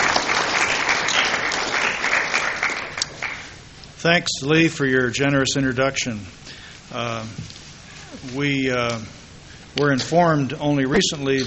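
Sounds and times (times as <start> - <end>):
audience applause welcoming a speaker: 0.0 - 3.6
speech: 4.0 - 9.2, 9.8 - 11.4.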